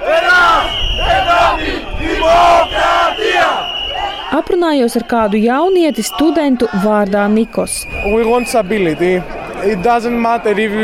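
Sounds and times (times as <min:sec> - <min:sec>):
protest crowd chanting slogans: 0:00.0 - 0:07.5
shrill whistle: 0:00.2 - 0:06.4, 0:07.2 - 0:10.8
speech: 0:04.4 - 0:10.8.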